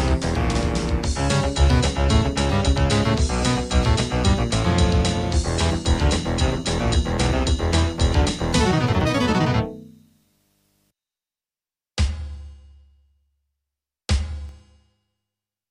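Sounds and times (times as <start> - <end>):
1980s Yamaha Electone organ with percussion: 0.0 - 10.0.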